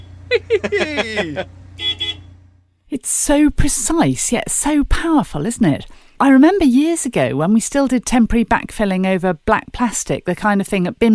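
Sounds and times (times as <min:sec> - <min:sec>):
horn on a big yellow digging machine: 0:00.0 - 0:00.3, 0:01.7 - 0:02.4
laughter: 0:00.3 - 0:01.5
speech: 0:00.4 - 0:01.6, 0:02.9 - 0:11.1.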